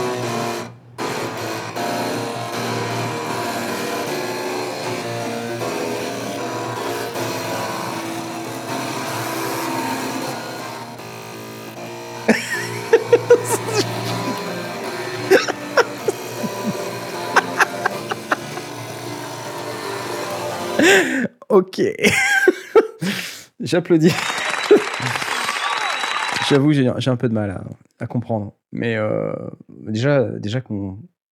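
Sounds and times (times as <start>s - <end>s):
floppy disk drives buzzing melodic notes: 0.0s - 21.0s
laughter: 12.3s - 19.2s, 20.8s - 21.3s, 22.0s - 23.1s, 24.1s - 26.6s
speech: 21.8s - 22.3s, 23.7s - 24.3s, 25.0s - 25.2s, 26.5s - 31.1s.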